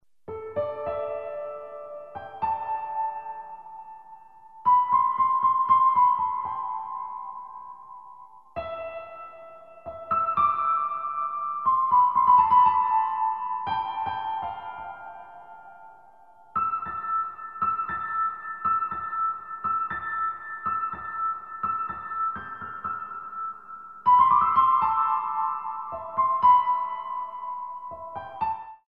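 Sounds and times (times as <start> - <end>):
piano: 0.0 - 28.8.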